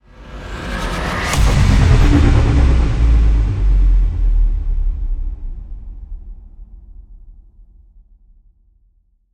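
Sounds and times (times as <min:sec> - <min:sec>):
modulated stinger: 0:00.6 - 0:06.2.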